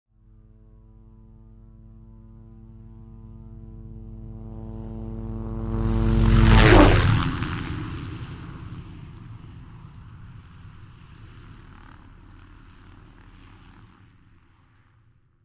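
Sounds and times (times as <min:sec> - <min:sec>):
Hughes 500 helicopter: 0:00.1 - 0:15.4.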